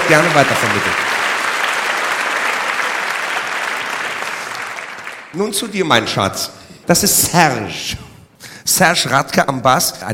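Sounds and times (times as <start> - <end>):
audience applause: 0.0 - 5.6
speech: 0.1 - 1.2, 5.3 - 8.1, 8.7 - 10.1.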